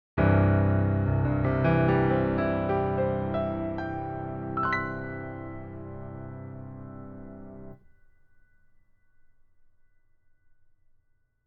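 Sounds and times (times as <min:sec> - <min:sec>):
piano: 0:00.2 - 0:08.6.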